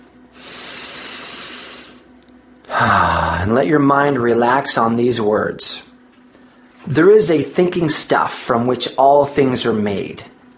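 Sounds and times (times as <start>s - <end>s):
long deep breath during a guided relaxation exercise: 0.3s - 2.1s, 2.7s - 3.5s
speech: 2.8s - 5.9s, 6.8s - 10.4s.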